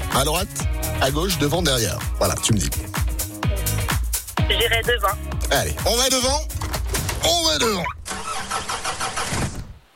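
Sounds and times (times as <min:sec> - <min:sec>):
speech: 0:00.1 - 0:03.1, 0:04.5 - 0:06.5, 0:07.2 - 0:08.0
car engine struggling to start, cranking: 0:06.5 - 0:09.4.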